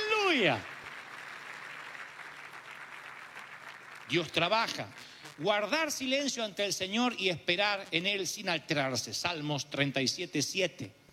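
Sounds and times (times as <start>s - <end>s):
audience applauding: 0.0s - 5.9s
speech: 0.4s - 0.7s, 4.1s - 11.0s.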